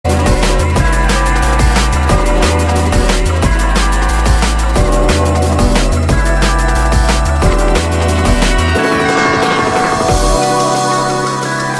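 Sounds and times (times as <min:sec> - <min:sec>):
UK drum and bass jungle music: 0:00.0 - 0:11.7.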